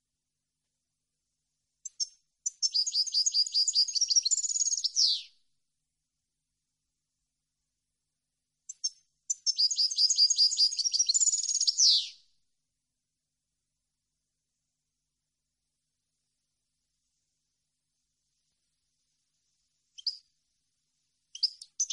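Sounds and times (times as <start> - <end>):
European goldfinch full song: 1.8 - 5.4, 8.7 - 12.2, 18.4 - 20.6, 21.2 - 21.9.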